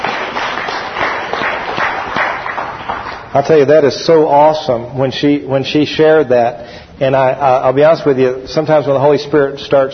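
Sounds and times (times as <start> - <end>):
audience clapping: 0.0 - 3.4
speech: 3.3 - 9.9.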